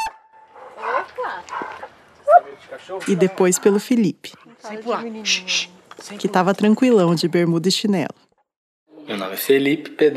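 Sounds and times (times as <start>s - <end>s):
dog barking at a family home: 0.0s - 2.6s
speech: 1.2s - 8.2s, 9.1s - 10.1s.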